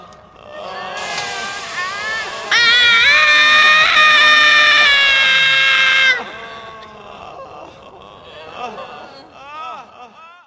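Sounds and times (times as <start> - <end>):
Halloween horror sounds: 0.3 - 7.2
laughter: 1.9 - 10.4.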